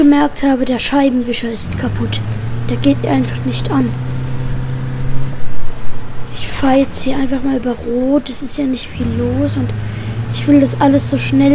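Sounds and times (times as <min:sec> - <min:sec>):
speech: 0:00.0 - 0:04.1, 0:06.4 - 0:11.5
bus engine rattling: 0:00.0 - 0:11.5.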